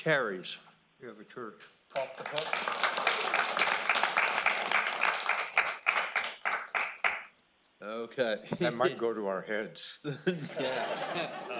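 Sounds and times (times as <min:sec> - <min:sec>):
speech: 0:00.0 - 0:03.9, 0:07.8 - 0:11.5
applause: 0:01.9 - 0:07.3
laughter: 0:10.2 - 0:11.5.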